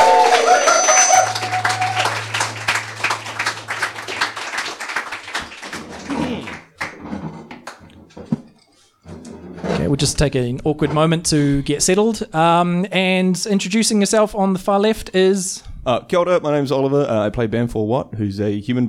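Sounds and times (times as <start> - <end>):
brief tonal sound: 0.0 - 5.7
steady low hum: 0.0 - 5.8
audience applause: 0.0 - 7.0
speech: 10.0 - 18.8.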